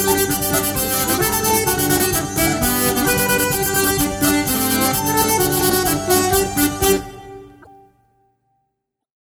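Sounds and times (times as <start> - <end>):
polka music: 0.0 - 7.8.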